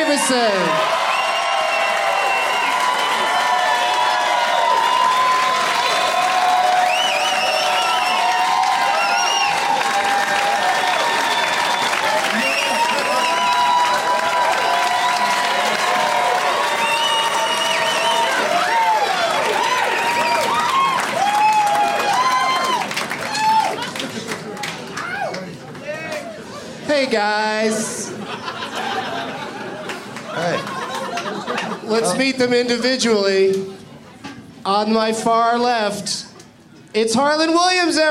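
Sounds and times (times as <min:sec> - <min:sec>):
audience cheers, whoops and shouting voices: 0:00.0 - 0:23.9, 0:25.0 - 0:26.4
audience applauding to welcome three guests onto the show: 0:00.0 - 0:26.2, 0:29.1 - 0:32.0
speech: 0:00.1 - 0:01.0, 0:32.2 - 0:33.8, 0:34.6 - 0:36.2, 0:37.0 - 0:38.0
laughter: 0:27.9 - 0:32.4.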